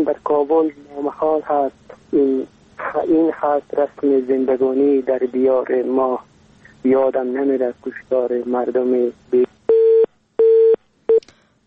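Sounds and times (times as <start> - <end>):
speech: 0.0 - 9.5
telephone busy tone after a caller was cut off: 9.7 - 10.8.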